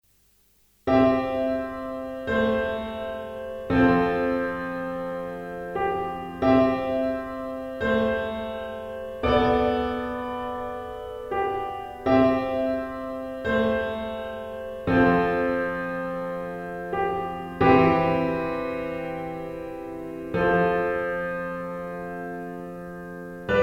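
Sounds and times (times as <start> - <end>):
pop piano: 0.9 - 23.6.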